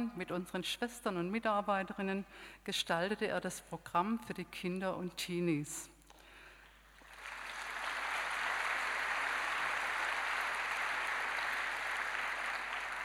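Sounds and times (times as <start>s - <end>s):
speech: 0.0s - 5.9s
audience applause: 7.0s - 13.0s.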